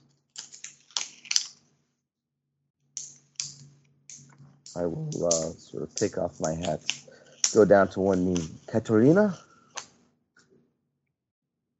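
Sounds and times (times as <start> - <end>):
speech: 4.8 - 9.5
crayons scribbling on a stack of paper: 5.2 - 9.5.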